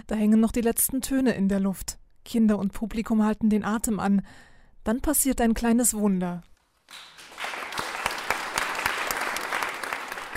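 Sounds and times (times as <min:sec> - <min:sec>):
speech: 0:00.1 - 0:07.1
audience clapping after a performance: 0:06.8 - 0:10.3.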